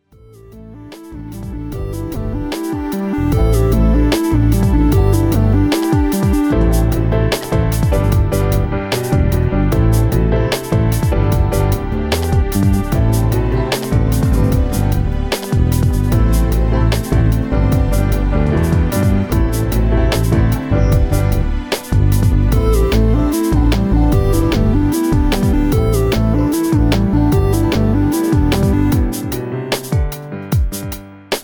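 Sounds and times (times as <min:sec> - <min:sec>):
guajira music: 0:00.2 - 0:31.4.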